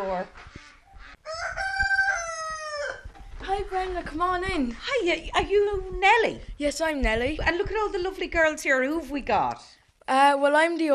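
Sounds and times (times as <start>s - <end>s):
speech: 0.1s - 0.6s, 3.6s - 10.9s
low clucks or thuds: 0.3s - 9.4s
rooster crowing at a home in County Wexford: 0.9s - 3.2s.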